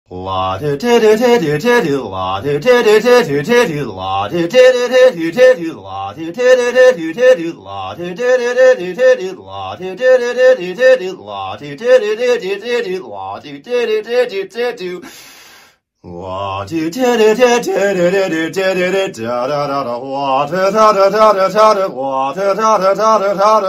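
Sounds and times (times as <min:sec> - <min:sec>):
frat boy singing a classical piece: 0:00.1 - 0:15.2, 0:16.0 - 0:23.6.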